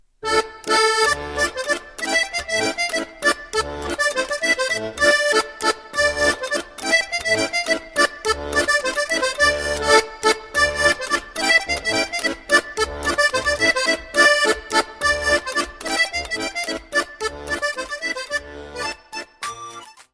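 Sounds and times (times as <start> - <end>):
French polka music: 0.1 - 20.1.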